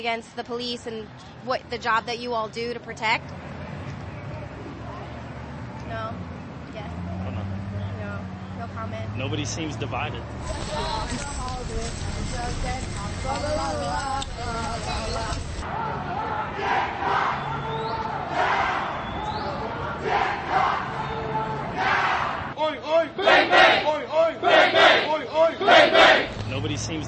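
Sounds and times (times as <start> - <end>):
speech: 0.0 - 3.4, 8.8 - 15.8, 22.9 - 27.0
protest crowd chanting: 10.4 - 26.6
crowd roar: 13.4 - 26.8.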